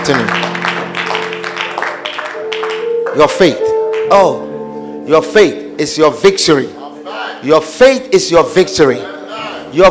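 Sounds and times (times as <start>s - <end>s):
speech: 0.0s - 0.4s, 3.2s - 6.8s, 7.4s - 9.1s, 9.7s - 9.9s
audience clapping hands: 0.0s - 4.4s.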